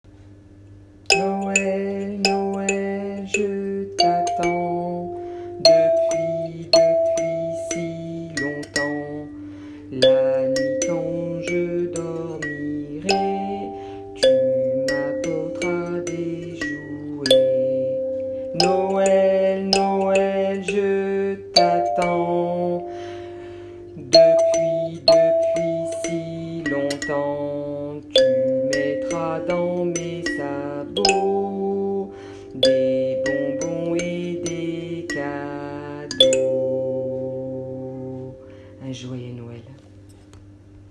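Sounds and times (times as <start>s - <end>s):
kalimba: 1.1s - 38.8s.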